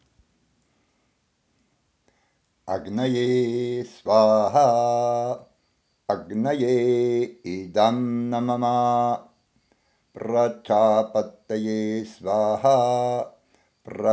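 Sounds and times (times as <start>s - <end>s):
mantra chanting at sunset: 2.7s - 5.5s, 6.1s - 9.3s, 10.2s - 14.1s.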